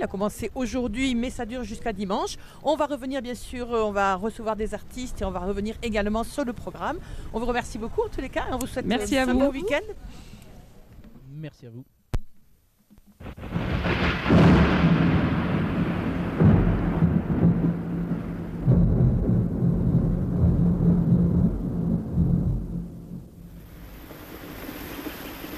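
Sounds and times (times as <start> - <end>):
speech: 0.0 - 10.4, 11.4 - 12.0
rain: 13.2 - 25.5.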